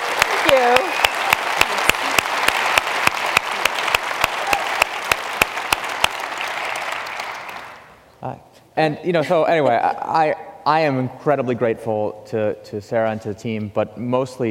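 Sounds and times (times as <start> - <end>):
audience round of applause: 0.0 - 7.9
speech: 0.5 - 1.0, 8.8 - 14.4.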